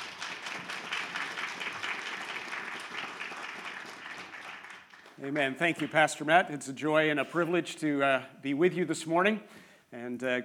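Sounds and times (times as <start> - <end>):
church congregation applauding a guest preacher: 0.0 - 6.0
speech: 5.2 - 10.4.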